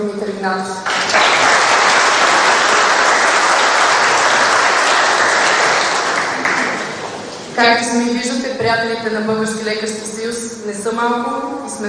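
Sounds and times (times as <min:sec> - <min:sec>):
speech: 0:00.0 - 0:00.9, 0:07.6 - 0:11.8
audience applause: 0:00.8 - 0:07.4.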